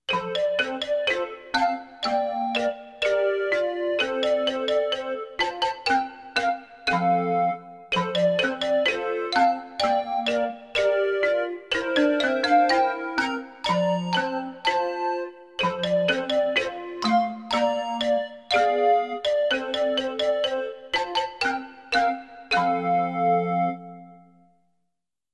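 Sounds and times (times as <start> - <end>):
children's birthday song instrumental: 0.0 - 24.6.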